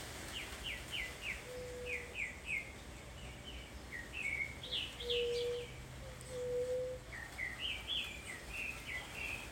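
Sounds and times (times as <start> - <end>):
white-tipped dove calling: 0.3 - 2.8, 3.4 - 9.5.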